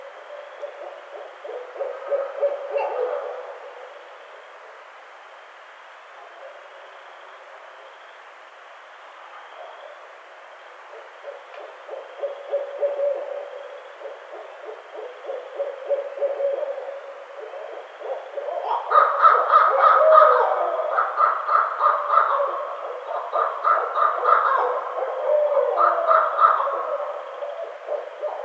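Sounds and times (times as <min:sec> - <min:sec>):
Barred Owl calling: 0:00.0 - 0:03.9, 0:10.8 - 0:28.4.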